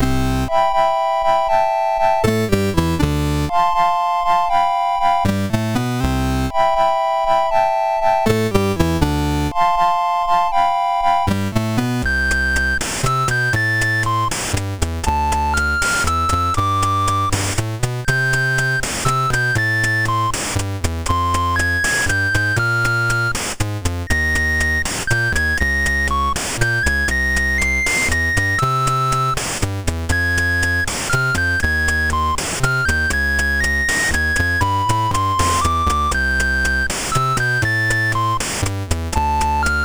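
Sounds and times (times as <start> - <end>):
ballad on SID MOS6581R3 sound chip: 0.0 - 39.8.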